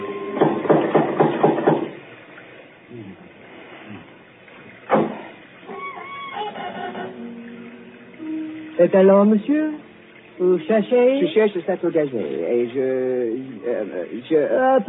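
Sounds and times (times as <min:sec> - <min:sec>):
door knocker metallic knocks: 0:00.4 - 0:01.9
sharp thud: 0:04.9 - 0:05.4
speech: 0:08.8 - 0:09.8, 0:10.4 - 0:14.8.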